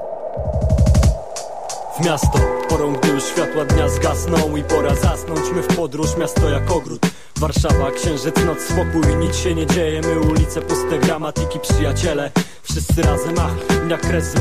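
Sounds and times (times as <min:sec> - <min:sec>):
early 2000s Polish hip-hop track intro: 0:00.5 - 0:14.3
speech: 0:02.0 - 0:14.3.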